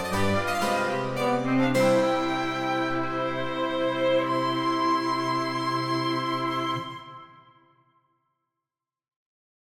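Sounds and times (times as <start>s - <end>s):
canon for woodwind and string trio in C minor: 0.0s - 7.7s.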